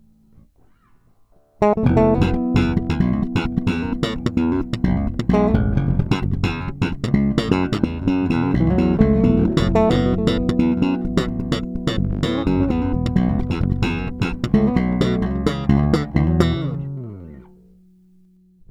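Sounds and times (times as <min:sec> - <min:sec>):
bass playing: 0:01.6 - 0:17.8.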